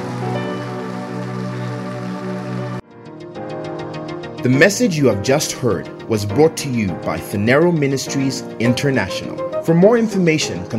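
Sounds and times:
audience clapping in praise: 0:00.0 - 0:02.8
steady musical drone: 0:00.0 - 0:02.8
speech: 0:04.4 - 0:10.7.

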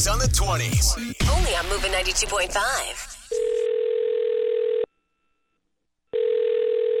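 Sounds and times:
speech: 0:00.0 - 0:03.4
telephone ringing: 0:03.3 - 0:04.9, 0:06.1 - 0:06.9.

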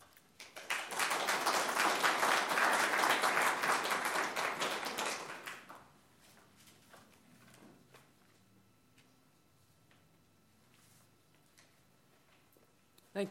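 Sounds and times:
audience applause welcoming speakers at a library talk: 0:00.4 - 0:05.9.

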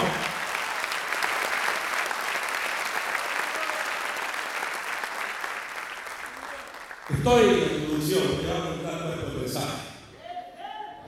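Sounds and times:
audience clapping hands: 0:00.0 - 0:08.3
speech: 0:07.1 - 0:09.9.

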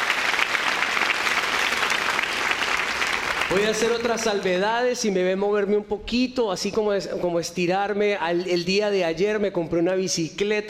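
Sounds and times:
audience applauding loudly: 0:00.0 - 0:04.6
speech: 0:03.5 - 0:10.6.

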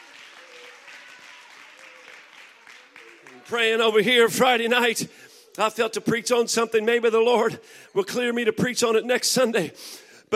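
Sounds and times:
audience hand clapping: 0:00.0 - 0:04.0
speech: 0:03.4 - 0:10.3.

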